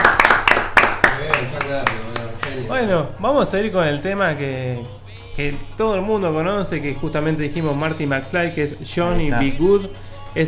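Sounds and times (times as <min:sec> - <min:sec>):
applause: 0:00.0 - 0:02.6
speech: 0:02.8 - 0:10.4.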